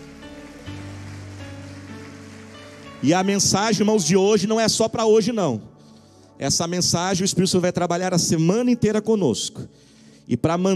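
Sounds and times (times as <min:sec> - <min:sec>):
audience applause: 0:00.0 - 0:04.1
speech: 0:03.0 - 0:05.7, 0:06.4 - 0:10.7.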